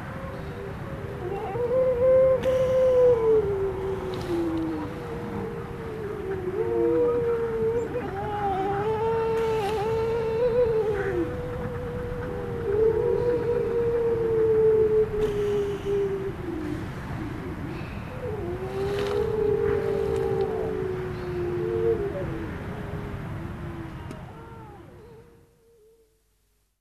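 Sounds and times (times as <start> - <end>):
Grey seal howling: 0.0 - 26.2
faint clicks: 4.0 - 5.2, 9.2 - 12.4, 18.8 - 20.6, 24.0 - 24.3.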